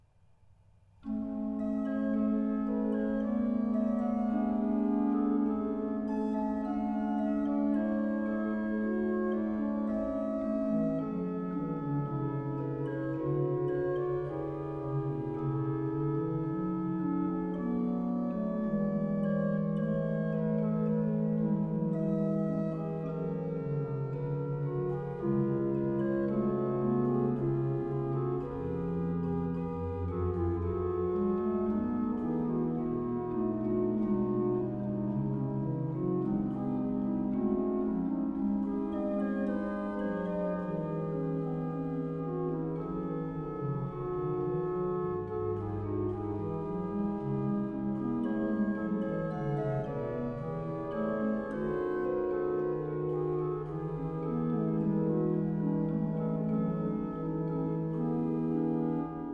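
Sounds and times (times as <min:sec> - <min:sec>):
organ prelude and fugue from Bohemia: 0:01.0 - 0:59.3.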